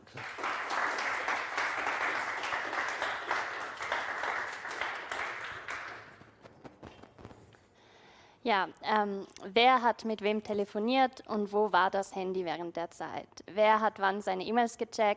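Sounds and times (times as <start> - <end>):
audience applause: 0.0 - 7.1
speech: 8.5 - 15.1.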